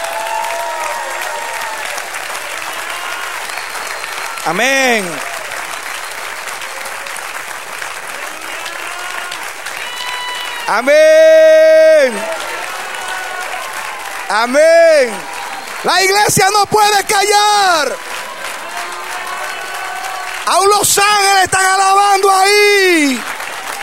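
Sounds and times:
audience applause: 0.0s - 23.8s
speech: 4.4s - 5.3s, 10.7s - 12.4s, 14.3s - 18.1s, 20.5s - 23.3s
sung or shouted exclamation: 4.4s - 5.4s, 8.2s - 13.4s, 14.2s - 18.0s, 18.7s - 23.3s.

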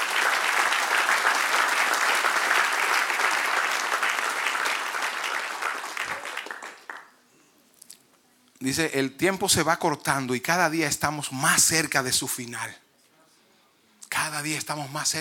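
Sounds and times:
audience applause: 0.0s - 7.1s
speech: 8.6s - 12.8s, 14.3s - 15.2s.

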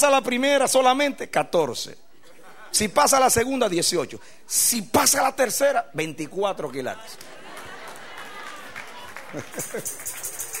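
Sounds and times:
speech: 0.0s - 2.1s, 2.7s - 7.4s, 9.3s - 10.3s
laughter: 2.1s - 3.0s, 7.0s - 10.5s
audience applause: 7.2s - 10.5s.

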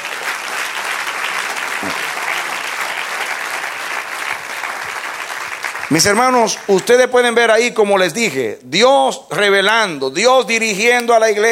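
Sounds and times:
audience applause: 0.0s - 7.0s
speech: 1.8s - 2.1s, 5.9s - 11.5s.

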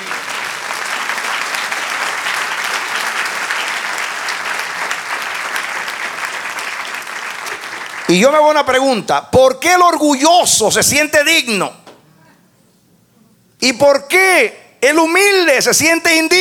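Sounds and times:
audience applause: 0.0s - 8.4s
speech: 8.1s - 11.8s, 13.6s - 16.3s.

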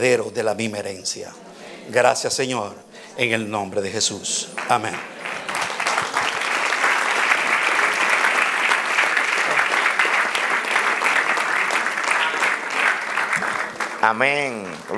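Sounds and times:
speech: 0.0s - 5.2s, 14.0s - 14.9s
sustained applause from a large audience: 4.3s - 14.9s.

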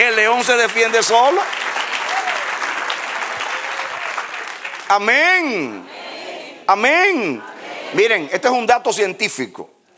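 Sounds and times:
speech: 0.0s - 1.7s, 4.9s - 6.0s, 6.7s - 9.7s
audience applause: 0.4s - 5.7s.

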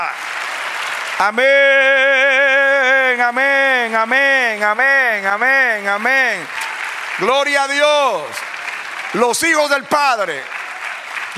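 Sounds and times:
church congregation applauding the Lord: 0.0s - 11.3s
loud sustained voice: 1.2s - 6.5s
speech: 1.2s - 6.6s, 7.2s - 8.4s, 9.1s - 10.6s.

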